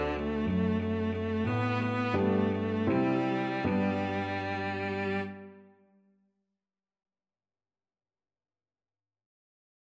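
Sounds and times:
cello melody: 0:00.0 - 0:05.8.

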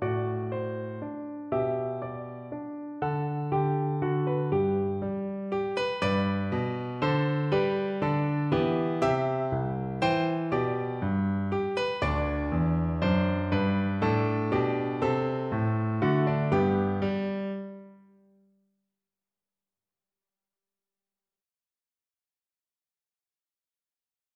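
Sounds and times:
German dance piece on piano: 0:00.0 - 0:18.0.

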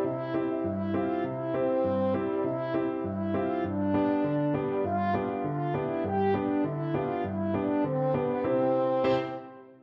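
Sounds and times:
french horn: 0:00.0 - 0:09.8.

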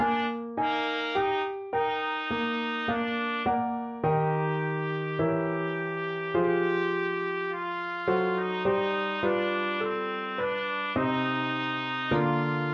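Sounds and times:
trumpet playing classical music: 0:00.0 - 0:12.7.

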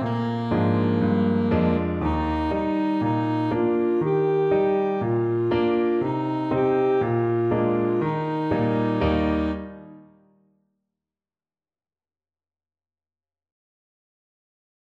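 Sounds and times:
alto saxophone: 0:00.0 - 0:10.1.

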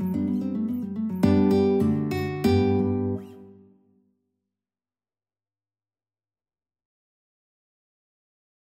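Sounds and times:
guitar duet: 0:00.0 - 0:03.8.

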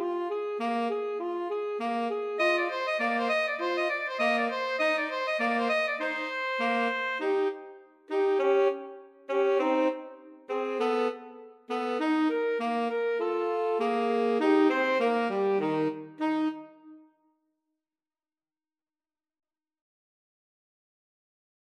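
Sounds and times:
two alto saxophones and a tenor saxophone: 0:00.0 - 0:17.0.

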